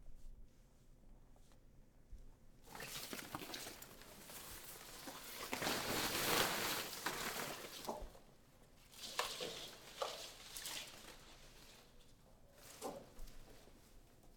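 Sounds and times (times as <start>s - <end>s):
plant rustling: 2.6s - 13.8s.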